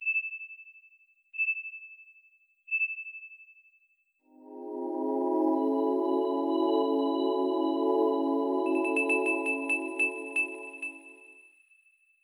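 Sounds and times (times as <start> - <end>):
system settings jingle: 4.4 - 11.2.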